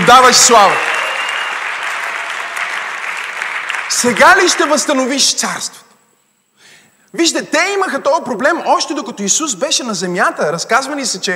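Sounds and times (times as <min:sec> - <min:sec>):
audience applause: 0:00.0 - 0:05.0
speech: 0:00.1 - 0:00.9, 0:03.9 - 0:05.8, 0:07.1 - 0:11.3.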